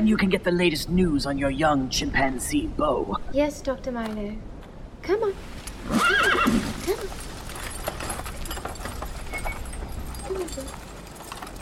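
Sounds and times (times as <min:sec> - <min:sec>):
speech: 0:00.0 - 0:07.2
horse hooves clip-clopping: 0:05.6 - 0:11.5
horse whinnying: 0:05.8 - 0:06.8
horse snorting: 0:05.8 - 0:07.0.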